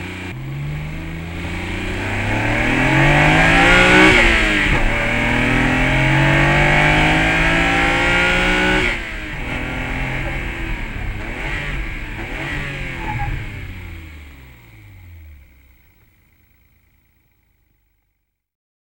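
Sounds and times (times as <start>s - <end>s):
boost sound: 0.5s - 14.8s.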